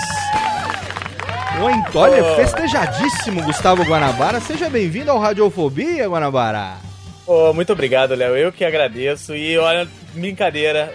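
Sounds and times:
applause: 0:00.0 - 0:03.0
speech: 0:01.6 - 0:10.9.

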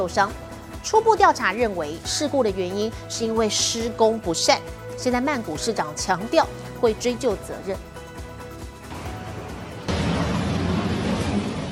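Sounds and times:
speech: 0:00.0 - 0:07.9
elevated bridge collapsing with a heavy crash: 0:08.9 - 0:11.7
low rumble: 0:08.9 - 0:11.7.

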